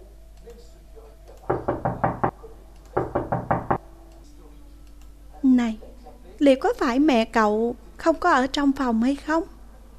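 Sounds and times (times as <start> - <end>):
knocking on a room door: 1.5 - 2.4, 3.0 - 3.8
speech: 6.4 - 9.6.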